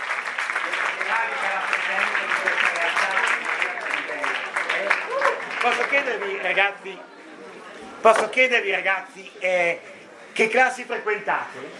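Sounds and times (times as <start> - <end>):
audience applause welcoming a newly founded foundation: 0.0 - 6.6
speech: 1.2 - 4.2, 5.6 - 7.2, 8.0 - 11.7.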